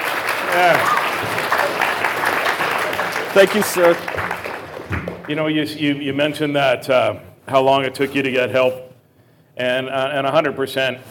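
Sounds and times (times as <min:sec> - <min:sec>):
audience applause: 0:00.0 - 0:05.3
speech: 0:00.5 - 0:01.8, 0:03.4 - 0:04.3, 0:05.0 - 0:08.9, 0:09.6 - 0:11.0.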